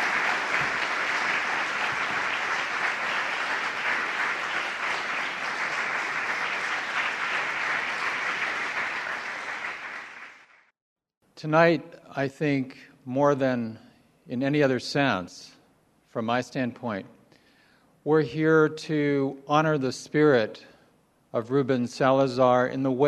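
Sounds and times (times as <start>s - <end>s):
audience applause: 0.0s - 10.7s
speech: 11.4s - 17.2s, 18.0s - 20.7s, 21.3s - 23.0s.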